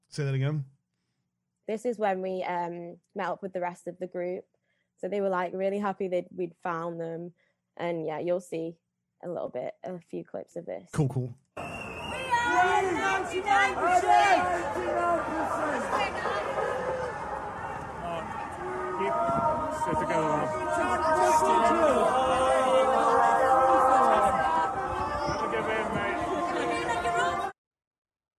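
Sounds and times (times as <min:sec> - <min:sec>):
speech: 0:00.2 - 0:00.8, 0:01.7 - 0:11.8, 0:12.6 - 0:16.3, 0:19.2 - 0:22.5
large street crowd chatter: 0:12.0 - 0:27.6.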